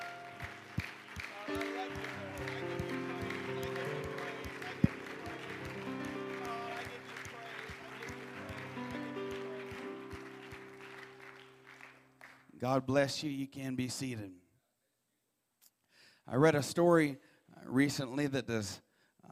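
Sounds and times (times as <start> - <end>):
keyboard or organ chords: 0.0 - 12.0
audience hand clapping in praise: 0.0 - 12.6
speech: 12.6 - 14.4, 16.3 - 18.8.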